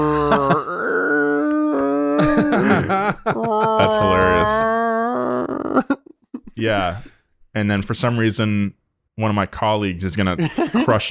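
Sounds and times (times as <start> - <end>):
voice imitating a deep-diving submarine's creaking hull: 0.0 - 6.2
speech: 0.3 - 0.6, 2.6 - 4.8, 6.6 - 11.0
laughter: 2.2 - 4.7, 10.4 - 11.0.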